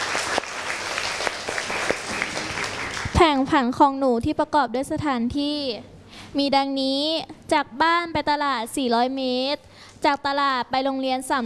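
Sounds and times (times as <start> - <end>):
classroom applause: 0.0 - 3.2
speech: 3.2 - 11.4.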